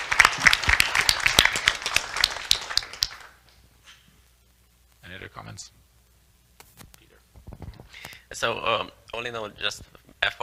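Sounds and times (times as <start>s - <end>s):
crowd applauding: 0.0s - 3.4s
speech: 5.4s - 5.8s, 8.4s - 10.4s.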